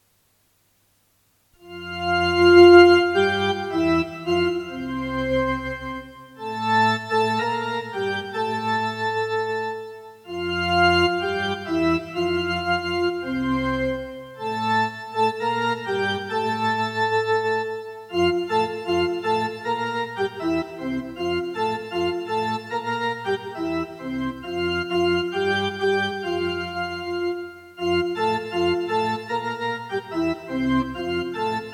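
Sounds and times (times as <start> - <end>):
Christmas carol on organ: 1.6 - 31.7.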